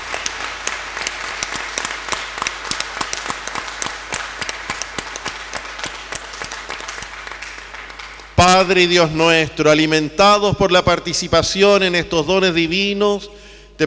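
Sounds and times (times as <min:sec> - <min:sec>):
audience applause: 0:00.0 - 0:08.4
speech: 0:08.4 - 0:13.8.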